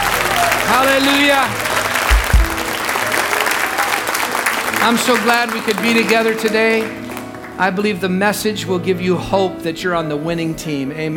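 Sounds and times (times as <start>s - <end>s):
church congregation clapping during a morning service: 0.0s - 7.9s
speech: 0.9s - 1.6s, 4.8s - 7.0s, 7.6s - 11.1s.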